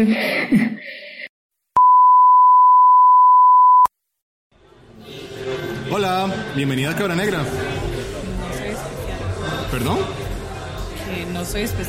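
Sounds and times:
speech: 0.0s - 1.0s, 5.9s - 7.7s, 9.7s - 10.2s, 11.1s - 11.8s
censor beep: 1.8s - 3.9s.

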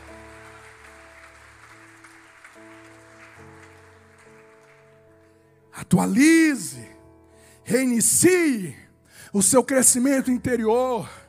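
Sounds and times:
audience applause: 0.0s - 5.1s
speech: 5.9s - 6.9s, 7.7s - 11.2s.

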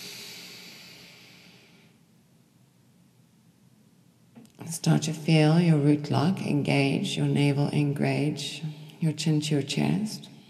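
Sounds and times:
slow soft inhaled breath during a breathwork exercise: 0.0s - 2.0s
speech: 4.7s - 10.3s.

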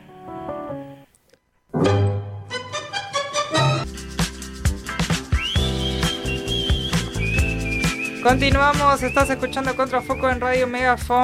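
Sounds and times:
full band playing song with strong bass: 2.3s - 10.7s
high whistling melody line: 2.5s - 11.0s
speech: 8.2s - 11.2s.

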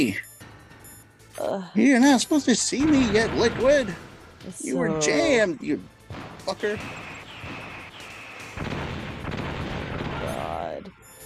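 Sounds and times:
speech: 0.0s - 0.3s, 1.4s - 7.0s
missile explosions in the Metal Gear Solid Integral video game: 2.8s - 4.3s, 6.0s - 10.8s.

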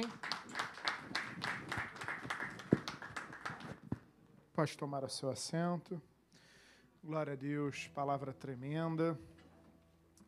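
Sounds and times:
audience applause: 0.0s - 4.0s
speech: 4.6s - 6.1s, 7.0s - 9.4s.

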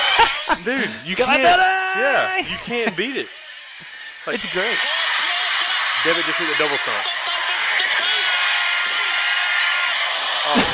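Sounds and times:
laughter: 0.0s - 1.6s, 2.2s - 10.7s
wrestling crowd cheering: 0.0s - 10.7s
speech: 0.2s - 5.0s, 6.0s - 7.2s.

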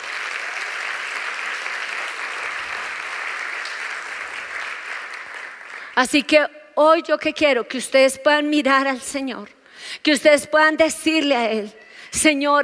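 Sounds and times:
audience applause: 0.0s - 6.0s
speech: 6.0s - 12.6s.

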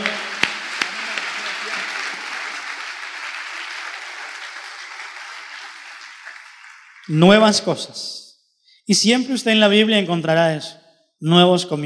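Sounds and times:
applause: 0.0s - 7.8s
speech: 7.1s - 8.2s, 8.9s - 11.8s.

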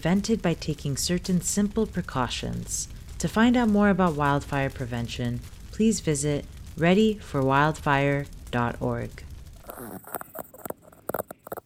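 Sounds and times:
speech: 0.0s - 10.3s
stomach growling: 9.2s - 11.6s.

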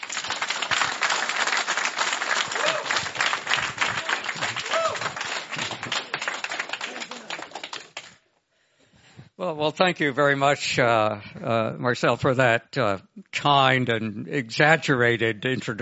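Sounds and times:
audience applause: 0.0s - 8.2s
speech: 9.4s - 15.7s.

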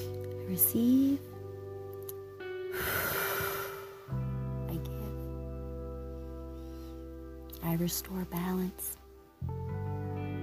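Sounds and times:
soft musical drone: 0.0s - 10.4s
speech: 0.5s - 1.3s, 7.7s - 9.6s
deep inhalation during a guided breathing exercise: 2.7s - 4.2s.

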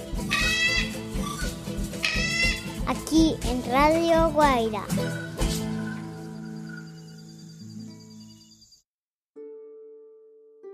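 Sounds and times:
low rhythmic musical backing: 0.0s - 6.4s
toucan call: 0.2s - 2.8s
speech: 2.9s - 5.3s.

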